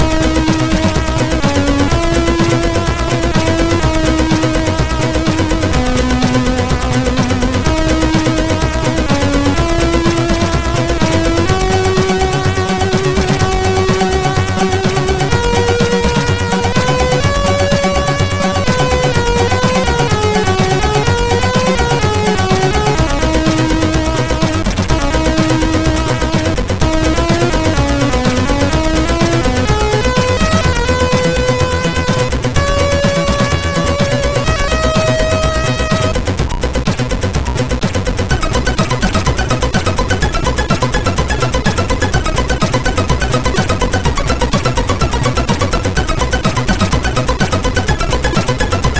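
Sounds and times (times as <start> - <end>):
chiptune music on MOS6581 SID chip: 0.0 - 48.9.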